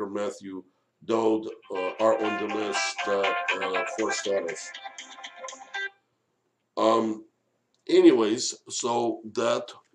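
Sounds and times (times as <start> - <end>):
speech: 0.1 - 5.2, 6.8 - 7.3, 7.9 - 9.9
mobile phone ringing: 1.7 - 6.0.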